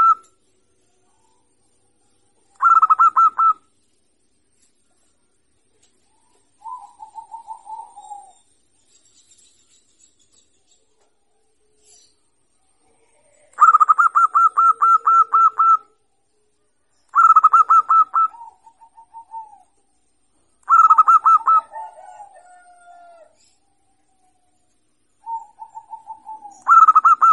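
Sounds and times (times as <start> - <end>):
zebra dove singing: 0.0 - 0.3, 2.5 - 3.7, 6.1 - 8.5, 12.8 - 16.0, 17.2 - 19.8, 20.6 - 23.6, 25.2 - 27.3.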